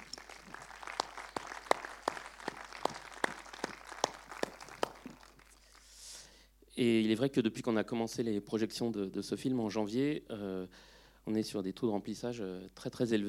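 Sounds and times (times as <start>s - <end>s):
audience applauding in the hall: 0.0s - 6.0s
speech: 6.8s - 13.2s.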